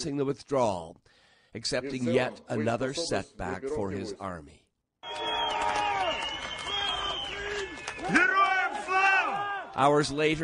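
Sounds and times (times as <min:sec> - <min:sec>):
speech: 0:00.0 - 0:05.3, 0:09.8 - 0:10.4
crowd shouting glory to armed forces: 0:05.1 - 0:09.8.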